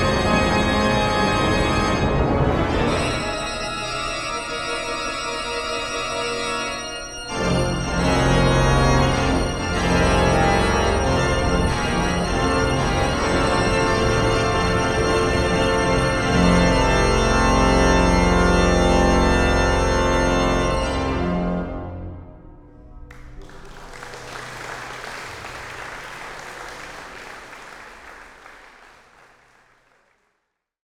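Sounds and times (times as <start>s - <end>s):
pipe organ improvisation with glockenspiel stop: 0.0s - 22.0s.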